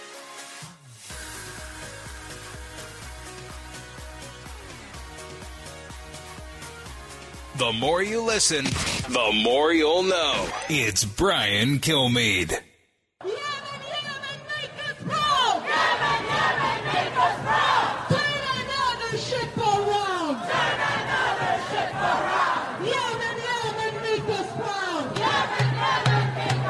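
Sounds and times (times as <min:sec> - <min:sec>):
speech: 0:07.6 - 0:12.6
protest crowd in a major city chanting and shouting: 0:07.6 - 0:26.6.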